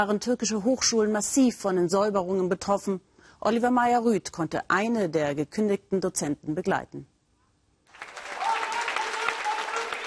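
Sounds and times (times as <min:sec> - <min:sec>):
speech: 0:00.0 - 0:07.1
audience applauding a lecturer: 0:07.9 - 0:10.0.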